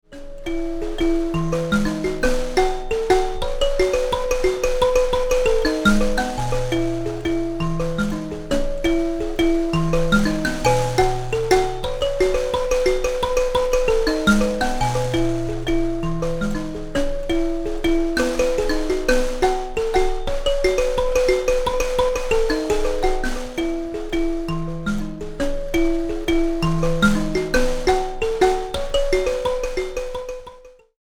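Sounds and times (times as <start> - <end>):
mbira: 0.1 - 30.9.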